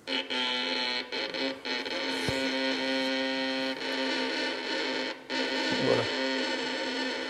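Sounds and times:
violin screeching under slow heavy bowing: 0:00.1 - 0:07.2.

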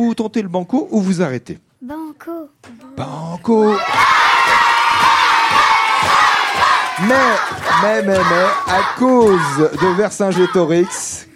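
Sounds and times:
speech: 0:00.0 - 0:04.3, 0:07.0 - 0:11.3
spectators cheering in a classroom: 0:03.6 - 0:11.2.

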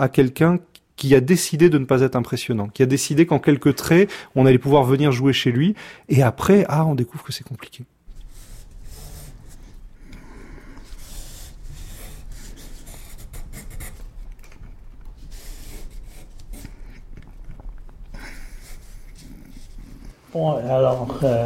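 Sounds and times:
speech: 0:00.0 - 0:08.0, 0:20.4 - 0:21.4
pen or pencil drawing on paper: 0:08.1 - 0:14.2, 0:15.2 - 0:17.1, 0:18.4 - 0:20.2.

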